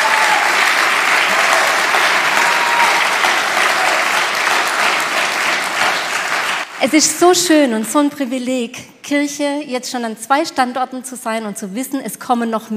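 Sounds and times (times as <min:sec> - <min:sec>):
big audience applause: 0:00.0 - 0:06.8
speech: 0:06.8 - 0:12.7.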